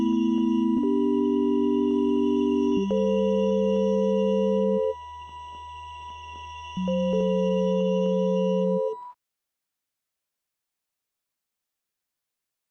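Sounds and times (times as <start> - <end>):
sine wave tone: 0.0 - 9.2.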